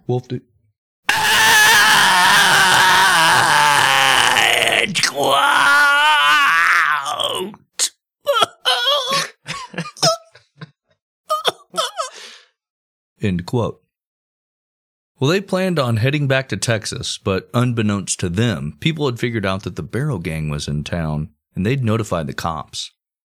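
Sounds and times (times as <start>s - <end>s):
speech: 0.1s - 0.5s, 4.8s - 6.0s, 13.2s - 13.8s, 15.2s - 23.0s
reenacted groaning in pain: 1.1s - 10.3s, 11.3s - 12.4s
short broken grunts and gasping sobs: 1.1s - 10.7s, 11.3s - 12.5s.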